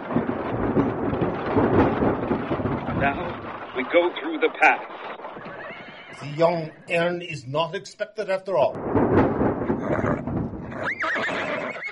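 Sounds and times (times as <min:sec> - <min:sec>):
rumbling background: 0:00.0 - 0:11.0
speech: 0:03.0 - 0:05.2, 0:06.2 - 0:09.2
horse whinnying: 0:05.4 - 0:06.9, 0:09.7 - 0:11.8.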